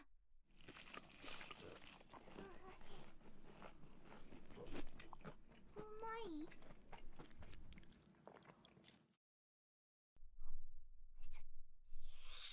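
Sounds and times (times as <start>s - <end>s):
fried shrimp picked up from the floor being bitten and chewed: 0.5s - 9.2s.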